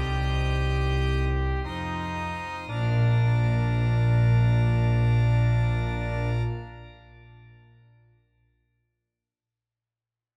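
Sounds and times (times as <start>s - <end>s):
hymn played on keyboard: 0.0s - 8.1s.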